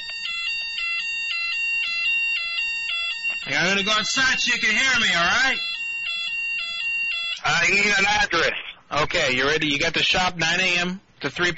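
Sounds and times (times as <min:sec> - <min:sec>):
fire alarm: 0:00.0 - 0:08.2
speech: 0:03.4 - 0:05.7, 0:07.4 - 0:11.5.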